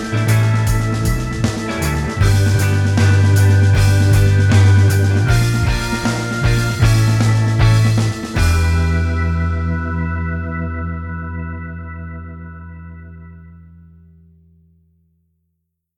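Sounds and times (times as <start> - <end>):
drums: 0.0 - 11.2.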